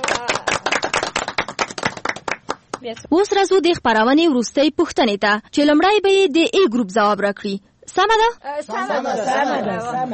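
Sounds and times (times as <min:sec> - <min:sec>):
quiz show audience clapping after a correct answer: 0:00.0 - 0:02.9
speech: 0:02.8 - 0:10.1.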